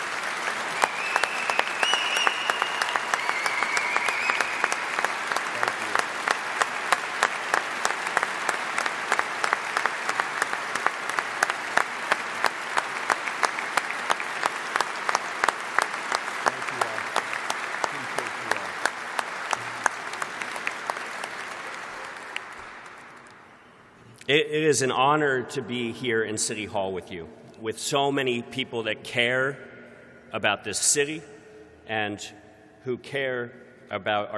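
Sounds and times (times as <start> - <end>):
audience applause: 0.0 - 23.5
speech: 24.3 - 29.7, 30.3 - 34.3.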